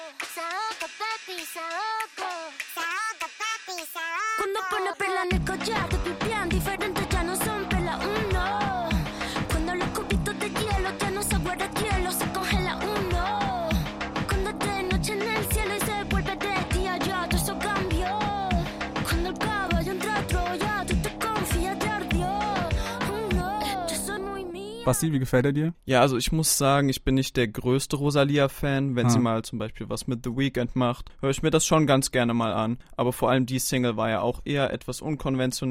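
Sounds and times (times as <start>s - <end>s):
pop song with South American-style drums and deep bass: 0.0s - 24.9s
person singing pop song vocals: 0.0s - 25.0s, 29.0s - 29.2s
speech: 1.2s - 3.3s, 4.6s - 6.9s, 24.9s - 35.6s.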